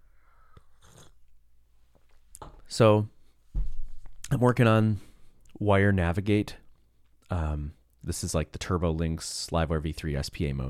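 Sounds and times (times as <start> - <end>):
slurping sip of tea: 0.5 - 1.3
speech: 2.7 - 3.1, 4.3 - 6.6, 7.3 - 10.6.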